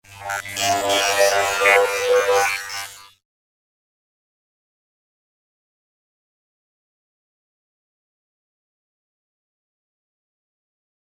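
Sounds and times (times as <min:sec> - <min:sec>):
warped electric water liquid sound: 0:00.1 - 0:02.9.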